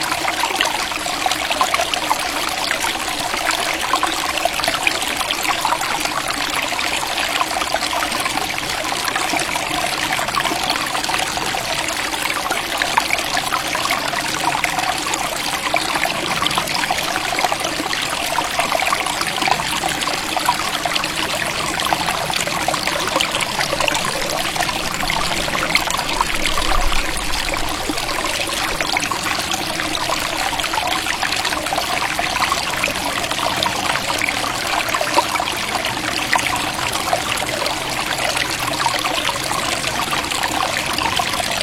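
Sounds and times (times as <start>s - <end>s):
small stream trickling and babbling: 0.0s - 41.6s.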